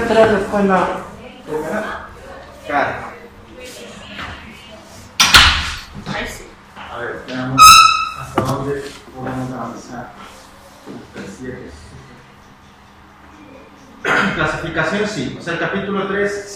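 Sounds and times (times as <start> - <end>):
speech: 0.1 - 2.1, 2.7 - 3.1, 10.9 - 11.8, 14.0 - 16.5
classroom door slamming shut: 5.2 - 5.8
high squeak: 7.5 - 8.4.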